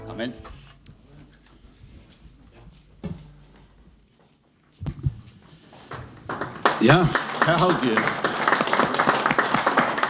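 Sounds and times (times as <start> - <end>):
speech: 0.2 - 0.5, 6.8 - 8.3
audience applause for the singers: 6.2 - 10.0.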